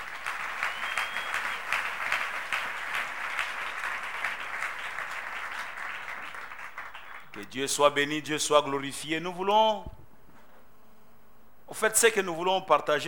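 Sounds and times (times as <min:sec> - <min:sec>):
church congregation applauding to acclaim God: 0:00.0 - 0:07.5
speech: 0:07.4 - 0:10.0, 0:11.7 - 0:13.0.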